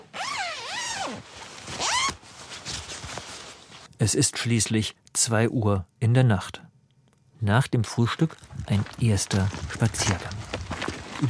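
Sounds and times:
tent door zipper being closed: 0.0 - 2.9
soft tugs and rustles: 0.2 - 3.9, 8.3 - 11.2
speech: 1.1 - 1.9, 4.0 - 6.6, 7.4 - 10.5.

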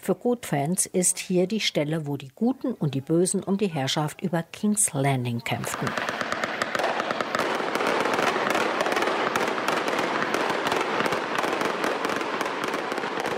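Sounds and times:
speech: 0.0 - 6.3
fireworks bangs and crackles: 5.5 - 13.3.

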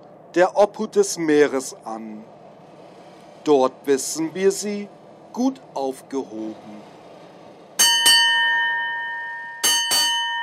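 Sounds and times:
speech: 0.4 - 2.4, 3.4 - 6.9
ship's bell struck: 7.8 - 10.4.

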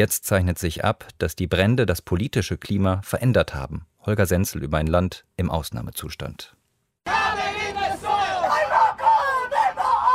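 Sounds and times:
speech: 0.0 - 7.2
demonstrators chanting at a climate protest in smoke-hazed Sydney: 7.1 - 10.1.

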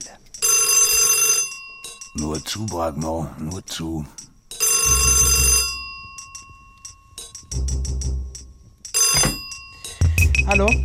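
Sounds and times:
old-style telephone bell ringing: 0.4 - 2.6, 4.5 - 7.5, 8.9 - 10.8
speech: 2.2 - 4.2, 10.6 - 10.8.

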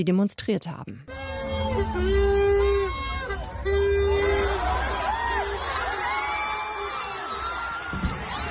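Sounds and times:
speech: 0.0 - 1.2, 1.8 - 2.4
large crowd cheering and shouting as statue topples: 1.2 - 8.4
whistles and whoops: 4.2 - 8.4
thud of statue toppling: 7.9 - 8.4.

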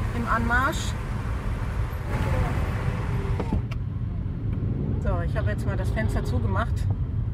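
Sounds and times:
many motorcycle engines rumbling along a road: 0.0 - 7.1
speech: 0.3 - 1.0, 5.3 - 7.1.

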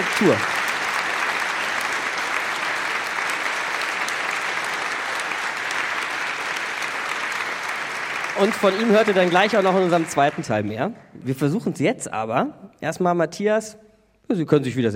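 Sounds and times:
audience applause: 0.0 - 10.7
speech: 0.2 - 0.5, 8.4 - 14.9.

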